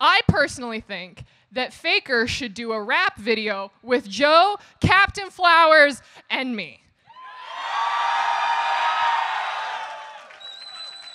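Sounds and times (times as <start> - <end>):
speech: 0.2 - 6.8
audience cheering and whooping: 7.2 - 11.1.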